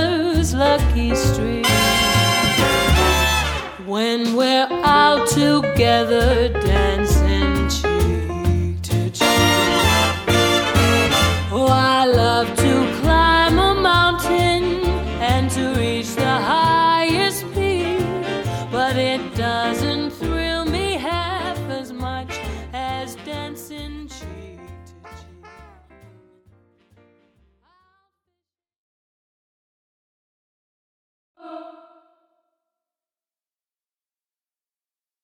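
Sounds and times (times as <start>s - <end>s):
vintage swing music: 0.0s - 27.4s.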